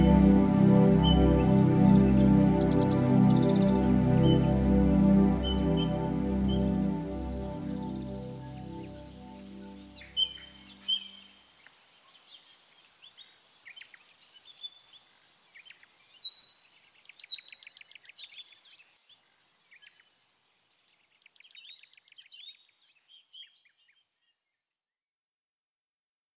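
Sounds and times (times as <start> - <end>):
karaoke music full mix: 0.0 - 9.1.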